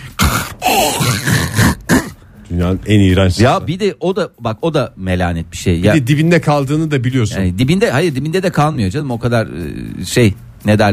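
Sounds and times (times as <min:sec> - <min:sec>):
voice imitating gurgle of empty water dispenser pump: 0:00.0 - 0:02.2
speech: 0:02.6 - 0:10.9.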